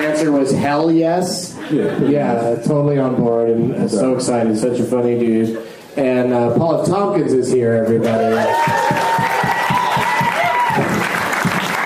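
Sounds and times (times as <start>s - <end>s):
speech: 0.2s - 9.6s
one person clapping hands: 8.6s - 11.8s.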